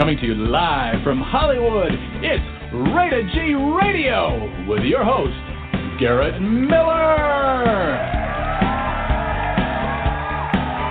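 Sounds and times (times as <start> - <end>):
speech: 0.0 - 8.2
crowd cheering and whooping wildly: 7.5 - 10.8.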